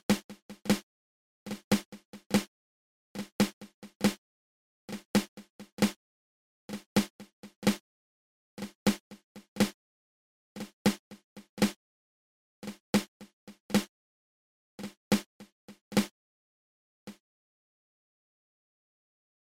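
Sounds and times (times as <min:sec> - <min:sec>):
flamacue drum rudiment played open close open: 0:00.0 - 0:00.8, 0:01.5 - 0:02.5, 0:04.9 - 0:06.0, 0:06.7 - 0:07.8, 0:08.6 - 0:09.8, 0:10.6 - 0:11.8, 0:12.6 - 0:13.9, 0:14.8 - 0:16.1.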